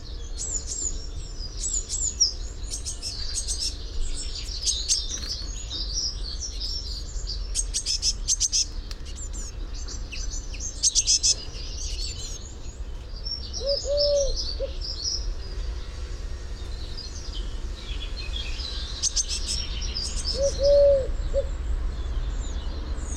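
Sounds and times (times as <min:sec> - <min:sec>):
Eurasian blue tit Cyanistes caeruleus calling: 0:00.1 - 0:15.7, 0:16.6 - 0:23.1.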